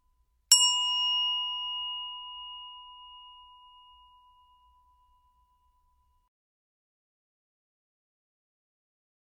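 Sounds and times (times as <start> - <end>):
handbell ringing: 0.5 - 6.2.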